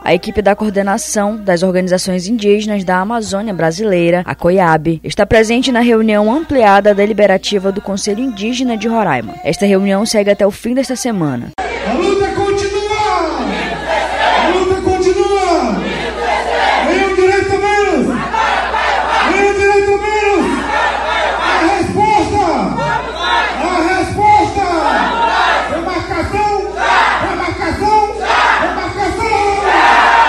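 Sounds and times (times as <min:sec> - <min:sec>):
speech: 0:00.1 - 0:11.6
crowd shouting battle cries of resistance: 0:11.6 - 0:30.2.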